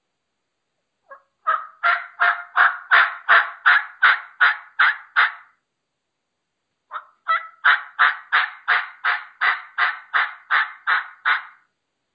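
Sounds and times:
raspy bird yelps from a hunting mouth call: 0:01.1 - 0:05.6, 0:06.9 - 0:11.6.

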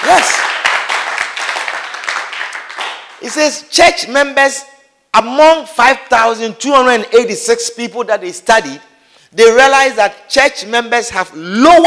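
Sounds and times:
audience clapping: 0:00.0 - 0:03.5
speech: 0:03.2 - 0:11.8.

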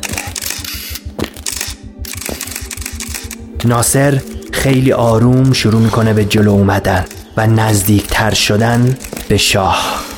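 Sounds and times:
reporters' cameras taking photos: 0:00.0 - 0:03.5, 0:07.0 - 0:10.1
speech: 0:03.6 - 0:10.0.

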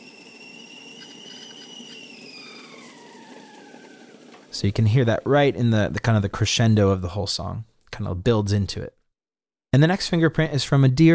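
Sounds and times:
boiling tea kettle whistling: 0:00.0 - 0:04.4
speech: 0:04.6 - 0:09.0, 0:09.7 - 0:11.1.

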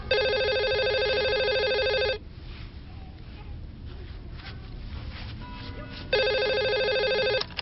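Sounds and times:
telephone bell ringing: 0:00.0 - 0:02.2, 0:06.1 - 0:07.5.

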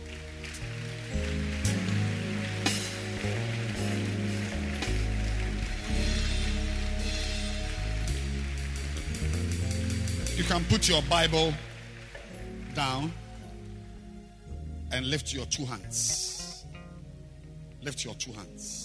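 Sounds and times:
audience clapping: 0:00.0 - 0:14.0
speech: 0:10.5 - 0:11.7, 0:12.8 - 0:13.2, 0:14.9 - 0:16.4, 0:17.8 - 0:18.8.

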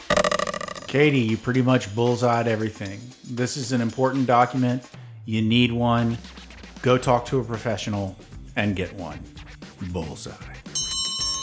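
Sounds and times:
closing bell ringing: 0:00.0 - 0:02.0, 0:10.8 - 0:11.4
speech: 0:00.9 - 0:10.6.

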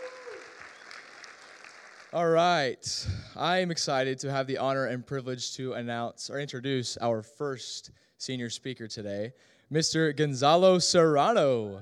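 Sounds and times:
audience applause: 0:00.0 - 0:02.3
speech: 0:02.1 - 0:11.7.

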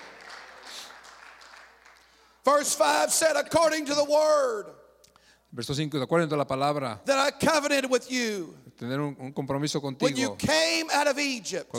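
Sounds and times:
audience clapping hands: 0:00.0 - 0:02.5
speech: 0:02.4 - 0:04.8, 0:05.5 - 0:11.7.

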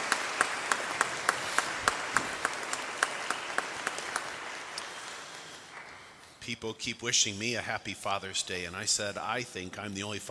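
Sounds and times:
audience applause: 0:00.0 - 0:06.2
speech: 0:06.5 - 0:10.3.

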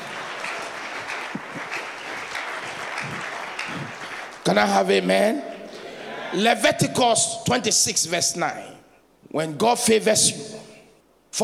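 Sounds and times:
crowd clapping: 0:00.0 - 0:05.8
speech: 0:04.5 - 0:05.5, 0:06.3 - 0:10.7.

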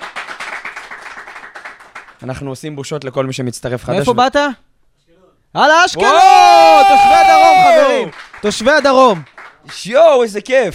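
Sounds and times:
crowd clapping: 0:00.0 - 0:02.4, 0:07.5 - 0:10.4
speech: 0:02.2 - 0:04.7, 0:05.5 - 0:10.7.

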